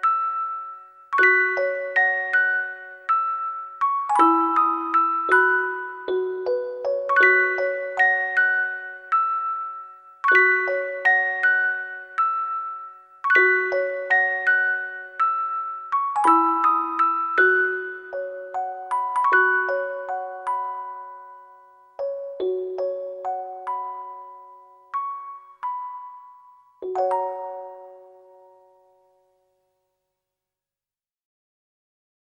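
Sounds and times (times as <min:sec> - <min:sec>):
music box organ melody: 0:00.0 - 0:29.9.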